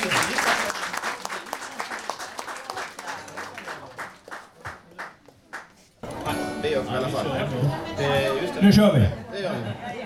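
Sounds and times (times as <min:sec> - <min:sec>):
audience applause: 0:00.0 - 0:08.6
speech: 0:06.8 - 0:09.8.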